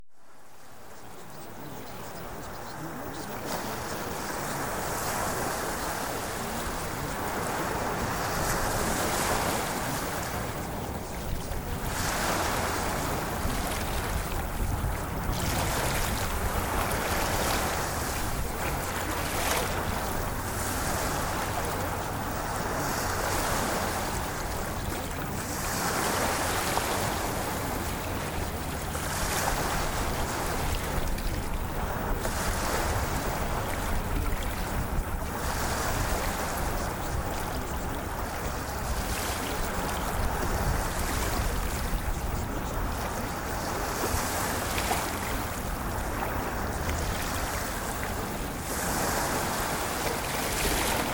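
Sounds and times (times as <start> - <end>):
ocean waves: 0.1 - 51.1.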